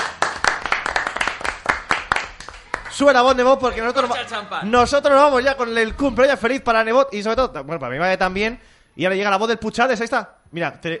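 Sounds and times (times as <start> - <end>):
applause from a small group: 0.0 - 4.2
speech: 3.0 - 10.9.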